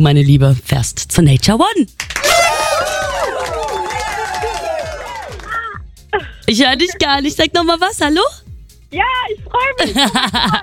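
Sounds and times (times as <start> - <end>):
speech: 0.0 - 2.3, 6.1 - 10.6
crowd cheering and screaming: 2.2 - 5.6
laughter: 9.8 - 10.6.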